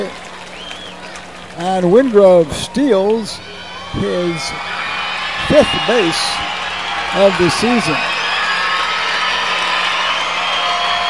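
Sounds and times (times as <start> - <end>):
stadium crowd making noise: 0.0 - 11.0
speech: 1.6 - 4.8, 5.5 - 6.5, 7.1 - 8.1.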